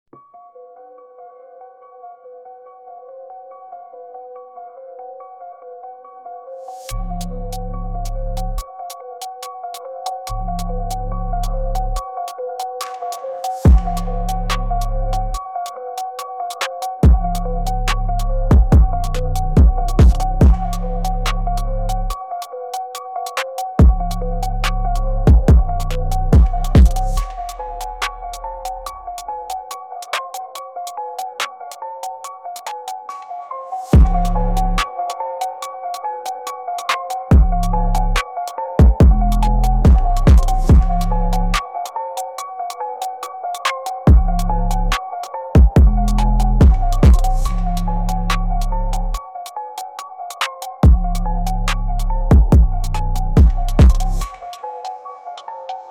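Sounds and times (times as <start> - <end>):
drill beat: 12.6 - 15.4, 16.5 - 22.2, 23.2 - 31.3, 34.0 - 35.6, 36.8 - 38.2, 38.8 - 41.7, 44.0 - 49.2, 50.6 - 54.6.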